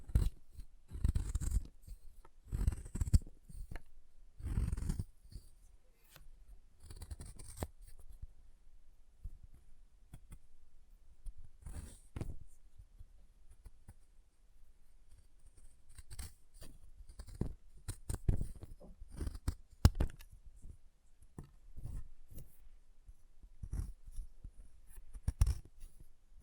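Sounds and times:
chalk being carved and cut: 0.1 - 1.7, 2.5 - 5.1, 6.8 - 7.8, 15.9 - 16.4, 17.0 - 20.0, 23.6 - 25.7.

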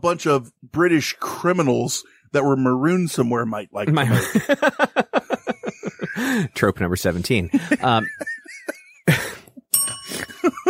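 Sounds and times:
speech: 0.0 - 5.3, 6.0 - 8.4
laughter: 3.9 - 6.5, 7.4 - 10.6
bell ringing: 9.7 - 10.6.

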